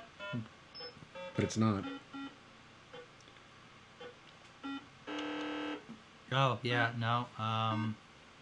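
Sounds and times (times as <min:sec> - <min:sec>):
speech: 0:00.3 - 0:00.6, 0:01.4 - 0:02.0, 0:06.3 - 0:08.0
short electronic beeps: 0:00.8 - 0:02.3.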